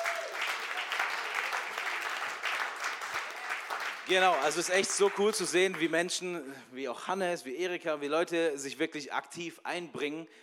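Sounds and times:
audience applause: 0.0 - 6.0
speech: 4.1 - 10.4.

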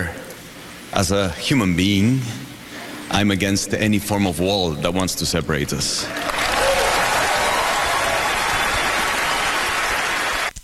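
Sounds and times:
speech: 0.9 - 2.4, 3.1 - 6.5
large audience applause: 6.1 - 10.5.

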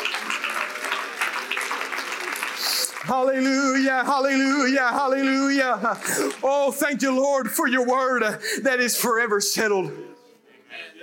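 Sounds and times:
audience clapping: 0.0 - 6.9
speech: 3.0 - 10.2.

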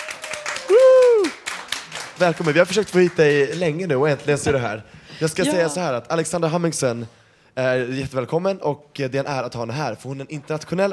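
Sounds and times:
applause: 0.0 - 4.0
speech: 2.2 - 10.9.

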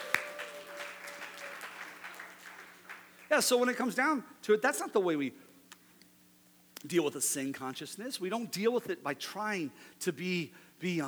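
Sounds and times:
crowd applause: 0.0 - 4.0
speech: 3.3 - 5.5, 6.8 - 11.0.

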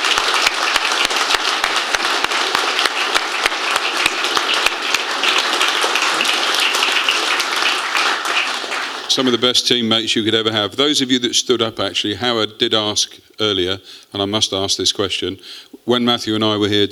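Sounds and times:
crowd applauding: 0.0 - 9.6
speech: 9.2 - 16.9.

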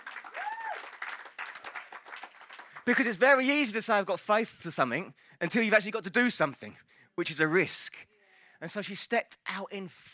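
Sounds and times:
crowd clapping: 0.0 - 3.7
whistle or cheer: 0.3 - 1.0
speech: 2.9 - 10.1.

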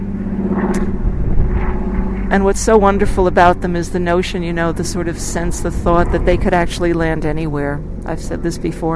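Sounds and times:
seaplane with pontoons flying overhead: 0.0 - 8.9
speech: 2.3 - 8.9.

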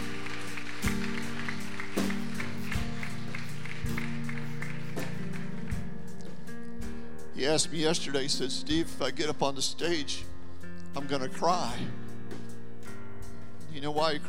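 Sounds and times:
audience applause: 0.0 - 5.9
speech: 7.4 - 10.3, 11.0 - 12.0, 13.8 - 14.2.

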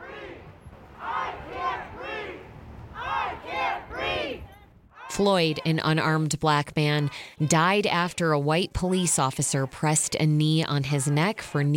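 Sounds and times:
protesters in Jackson's Town Square chanting at a rally: 0.0 - 11.7
speech: 5.2 - 11.7.

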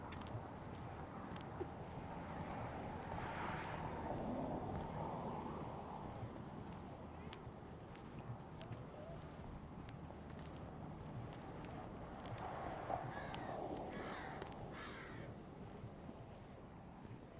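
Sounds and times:
low traffic rumble in a Seattle neighborhood: 0.0 - 17.3
crows cawing: 13.1 - 15.4.

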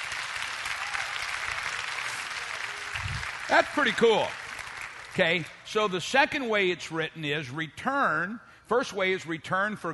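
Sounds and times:
audience clapping: 0.0 - 5.7
speech: 3.5 - 4.4, 5.2 - 9.9.

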